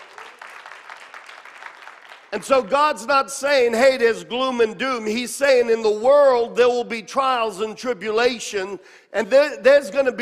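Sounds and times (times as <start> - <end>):
audience clapping: 0.0 - 2.8
speech: 2.3 - 10.2.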